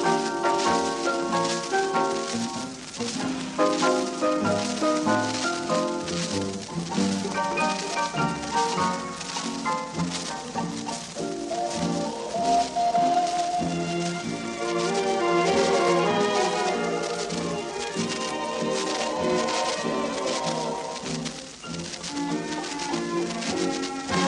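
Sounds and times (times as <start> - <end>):
waltz music: 0.0 - 24.2.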